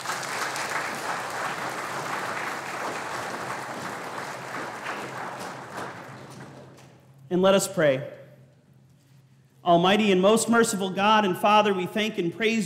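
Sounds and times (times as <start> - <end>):
audience applause: 0.0 - 6.8
speech: 7.3 - 8.2, 9.6 - 12.6.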